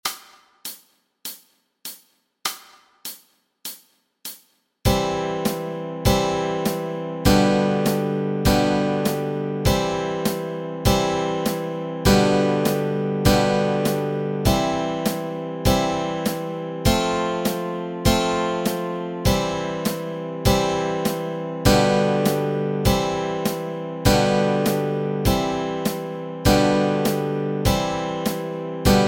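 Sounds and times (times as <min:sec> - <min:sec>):
guitar chords: 0:04.9 - 0:29.0.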